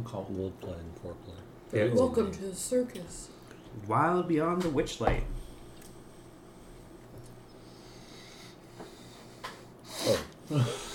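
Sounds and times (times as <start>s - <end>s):
speech: 0.0s - 5.4s, 10.5s - 10.8s
heavy breathing into a microphone: 6.2s - 10.9s.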